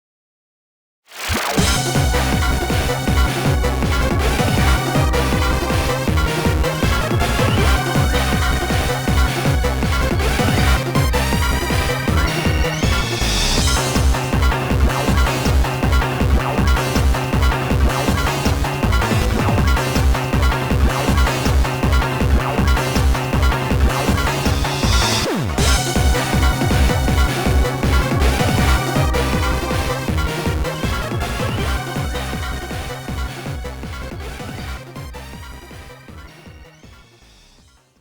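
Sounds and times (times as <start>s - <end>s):
duel music: 1.1s - 37.9s.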